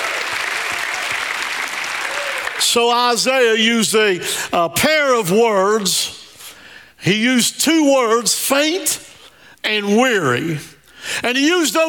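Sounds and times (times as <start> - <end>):
audience hand clapping: 0.0 - 2.8
speech: 2.6 - 6.2, 7.0 - 11.8.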